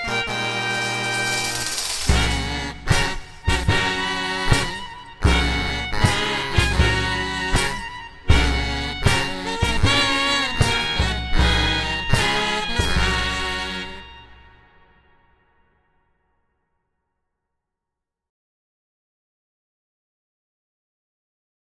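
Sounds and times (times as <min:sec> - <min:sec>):
wedding march music: 0:00.0 - 0:15.0.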